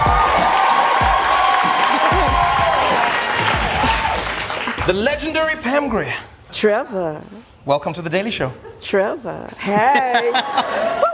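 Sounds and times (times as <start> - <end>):
audience cheers and whoops: 0.0 - 4.5
audience applause: 0.0 - 5.5
speech: 4.9 - 11.1
laughter: 9.5 - 11.1.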